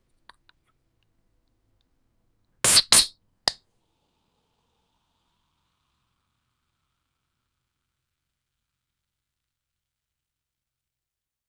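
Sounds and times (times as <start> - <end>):
beverage can opening: 2.7 - 3.1.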